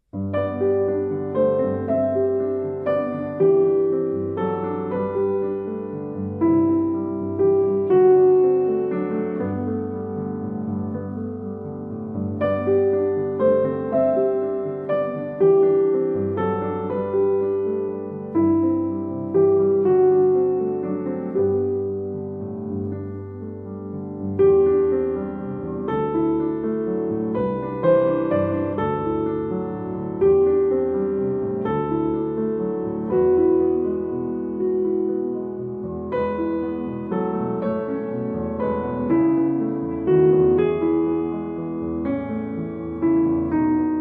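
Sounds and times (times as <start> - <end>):
solo piano: 0.0 - 43.9.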